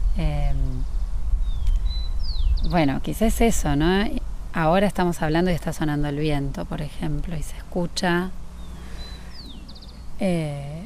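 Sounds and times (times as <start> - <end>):
birds chirping outdoors by a river: 0.0 - 4.1, 7.2 - 10.8
speech: 0.2 - 1.0, 2.6 - 8.4, 10.2 - 10.8.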